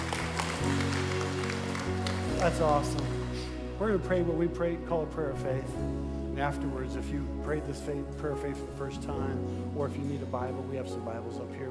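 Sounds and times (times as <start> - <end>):
crowd applause: 0.0 - 3.6
sustained keyboard chords: 0.0 - 11.6
speech: 2.4 - 3.1, 3.8 - 11.6.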